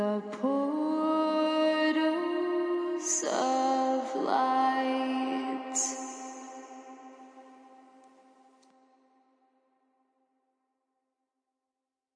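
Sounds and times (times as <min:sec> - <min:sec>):
a cappella vocal hook: 0:00.0 - 0:08.1.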